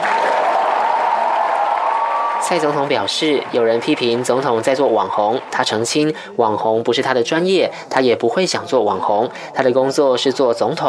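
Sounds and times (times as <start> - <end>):
audience applause: 0.0 - 6.2
speech: 2.4 - 10.8.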